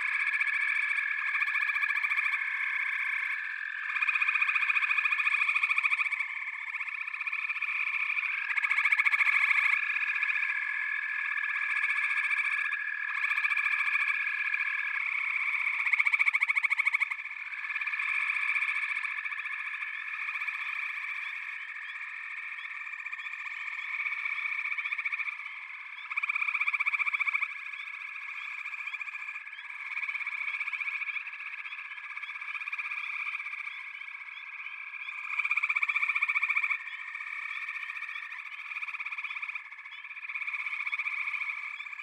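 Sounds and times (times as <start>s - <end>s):
frog chorus trilling: 0.0s - 42.0s.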